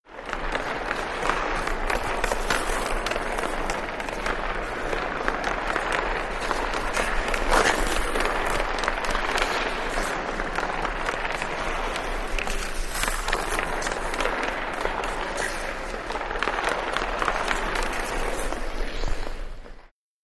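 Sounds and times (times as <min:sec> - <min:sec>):
hockey player skating on ice: 0:00.1 - 0:19.9.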